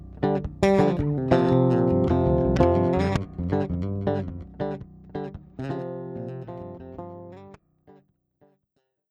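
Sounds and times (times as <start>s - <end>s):
lead melody: 0.2s - 7.4s
musical chords: 0.6s - 4.7s.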